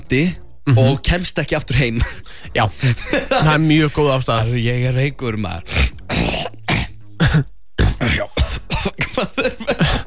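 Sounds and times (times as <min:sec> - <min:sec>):
speech: 0:00.1 - 0:05.8
person faking a cough: 0:06.1 - 0:10.0.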